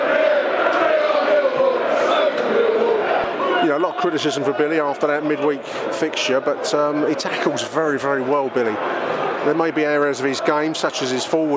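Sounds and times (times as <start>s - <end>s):
crowd singing a chant: 0.0s - 3.6s
football crowd at The Den roaring after a Millwall goal: 0.0s - 11.5s
speech: 3.8s - 11.5s.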